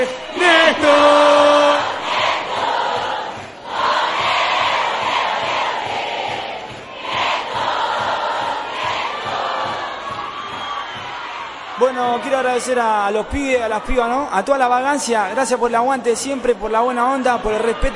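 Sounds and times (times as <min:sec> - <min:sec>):
live crowd applause and cheering: 0:00.0 - 0:17.9
speech: 0:12.6 - 0:17.9.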